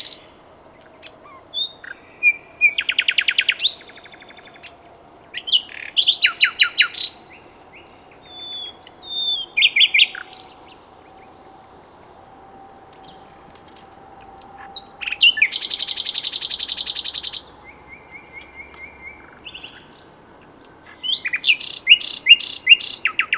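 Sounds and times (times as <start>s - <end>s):
common nightingale singing: 0.8s - 23.2s.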